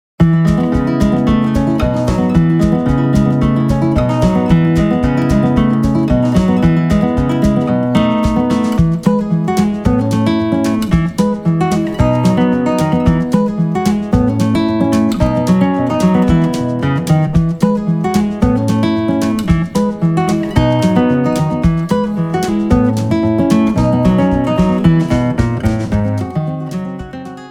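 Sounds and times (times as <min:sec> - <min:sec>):
guitar: 0:00.2 - 0:27.5.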